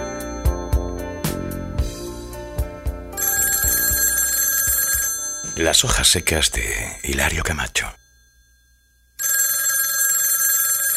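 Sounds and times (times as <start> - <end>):
telephone ringing: 0.0 - 2.0, 3.1 - 10.9
speech: 5.6 - 8.0.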